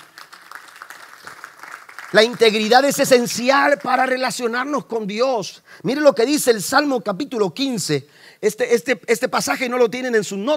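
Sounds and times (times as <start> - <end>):
audience applauding loudly: 0.0 - 4.2
speech: 2.1 - 10.5.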